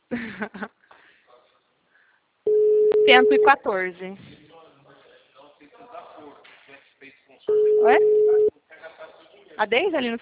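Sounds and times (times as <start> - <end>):
speech: 0.1 - 0.8, 3.1 - 4.4, 7.5 - 8.4, 9.6 - 10.2
telephone call tone for an unanswered call: 2.5 - 3.6, 7.5 - 8.5.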